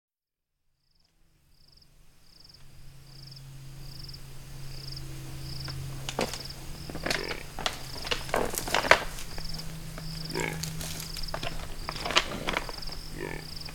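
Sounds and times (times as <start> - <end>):
impala fighting with clacking horns: 4.3 - 13.7.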